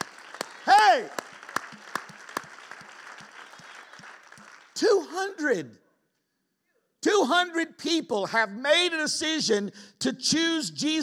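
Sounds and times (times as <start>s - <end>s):
audience applause: 0.0s - 4.8s
speech: 1.0s - 1.2s, 5.2s - 5.8s, 7.0s - 11.0s.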